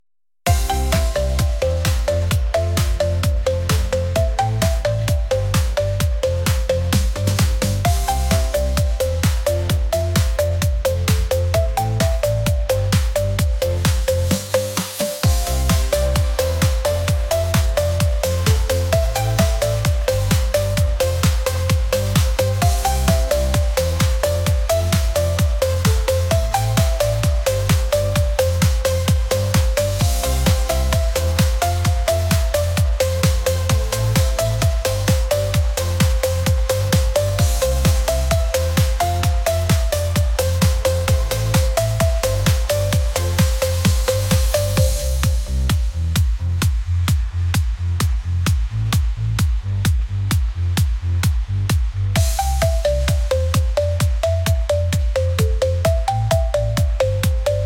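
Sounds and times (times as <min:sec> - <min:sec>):
dreamy electronic pop with lush production and catchy melodies: 0:00.5 - 0:57.6.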